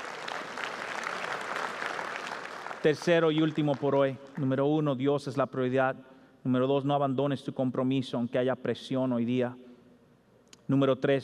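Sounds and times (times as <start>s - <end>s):
audience applause: 0.0s - 4.0s
speech: 2.8s - 9.6s, 10.7s - 11.2s.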